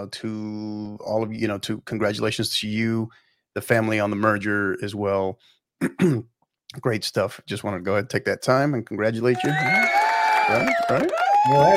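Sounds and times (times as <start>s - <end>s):
speech: 0.0s - 11.7s
applause: 9.3s - 11.7s
cheering: 9.3s - 11.7s.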